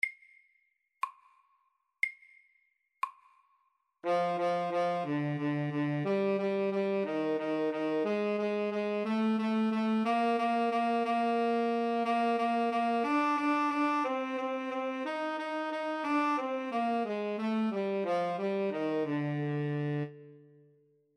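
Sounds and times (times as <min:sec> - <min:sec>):
slow etude: 0:04.0 - 0:20.7.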